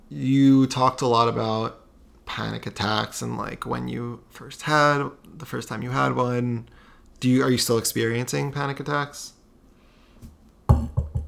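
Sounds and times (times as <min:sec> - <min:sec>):
speech: 0:00.1 - 0:01.8, 0:02.4 - 0:09.4
hollow knocking on wood: 0:10.7 - 0:11.2.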